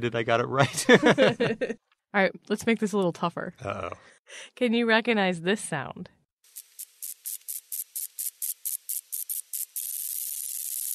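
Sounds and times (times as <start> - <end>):
speech: 0.0 - 6.2
laughter: 0.5 - 1.8, 3.6 - 4.0
moth ultrasonic mating call: 6.5 - 10.9.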